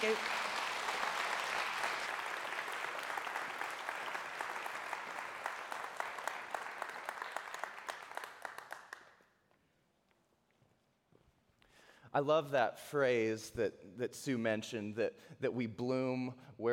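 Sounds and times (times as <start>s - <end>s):
speech: 0.0s - 0.4s, 12.2s - 16.7s
audience applause: 0.0s - 9.2s.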